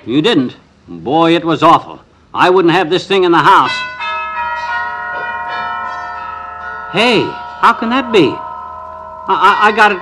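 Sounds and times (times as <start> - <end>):
speech: 0.0 - 3.9, 6.9 - 8.4, 9.3 - 10.0
new set of church bells ringing down the block: 3.5 - 10.0.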